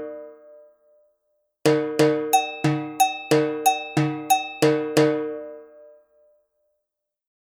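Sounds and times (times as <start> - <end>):
agogo bell playing a samba reggae rhythm: 1.7 - 6.0.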